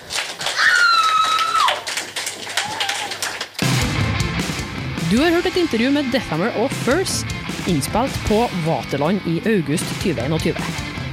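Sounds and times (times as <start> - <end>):
audience applause for the bands: 0.0 - 3.8
speech: 5.1 - 10.9.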